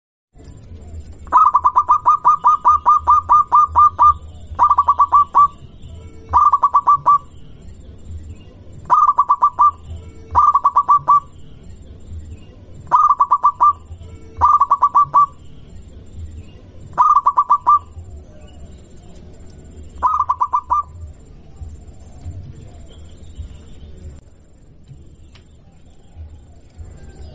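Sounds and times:
zebra dove cooing song: 0.9s - 7.4s, 8.8s - 11.4s, 12.8s - 15.5s, 16.8s - 23.1s.

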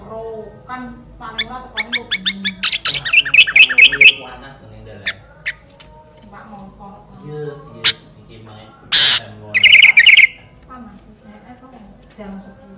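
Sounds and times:
sooty-headed bulbul song: 1.4s - 4.4s, 8.9s - 10.4s.

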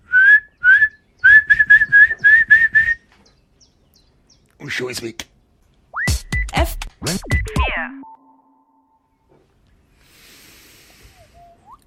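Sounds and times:
person whistling an imitation of a swallow call: 0.1s - 3.1s, 5.9s - 6.5s
speech: 4.6s - 5.3s.

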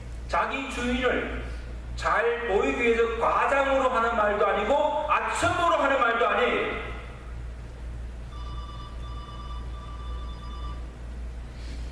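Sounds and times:
speech: 0.3s - 6.9s
mobile phone ringing in the church: 8.3s - 10.9s.

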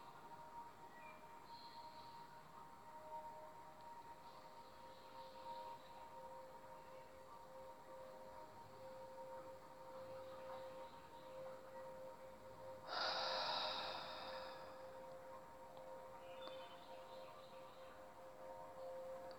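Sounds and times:
faint steady hum: 0.0s - 19.3s
deep breath during a relaxation breathing exercise: 12.9s - 14.9s.

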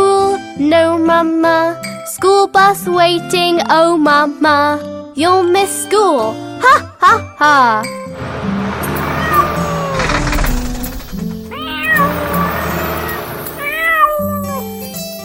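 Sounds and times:
speech: 1.1s - 8.3s
steady musical backing: 8.2s - 14.9s
kitten meowing: 13.6s - 14.7s.

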